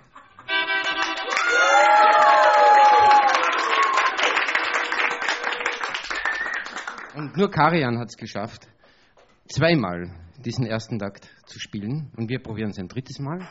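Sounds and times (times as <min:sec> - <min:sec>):
audience clapping: 0:00.5 - 0:07.6
speech: 0:07.2 - 0:08.7, 0:09.5 - 0:13.4.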